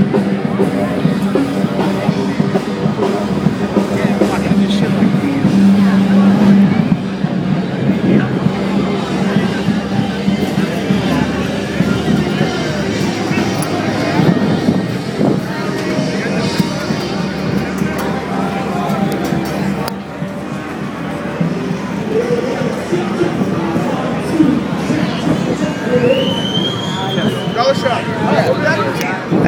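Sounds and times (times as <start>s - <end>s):
crowd chatter on 6th Street during SXSW: 0.0s - 29.4s
traffic rumbling: 0.0s - 29.4s
short whistling sweep: 25.9s - 28.0s.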